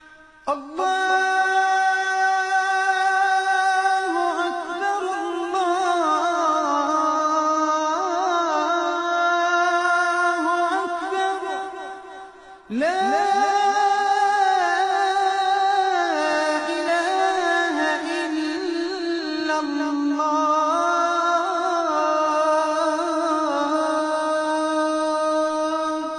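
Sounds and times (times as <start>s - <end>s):
azan call to prayer in Abu Dhabi: 0.0s - 26.1s.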